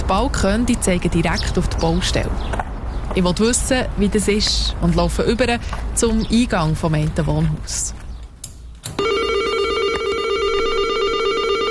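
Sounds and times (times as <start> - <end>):
speech: 0.1 - 8.0
intercom door buzzer: 9.0 - 11.6.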